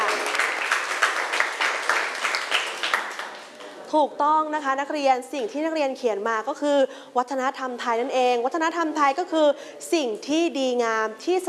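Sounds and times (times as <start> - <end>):
students clapping: 0.0 - 3.6
speech: 3.9 - 11.4.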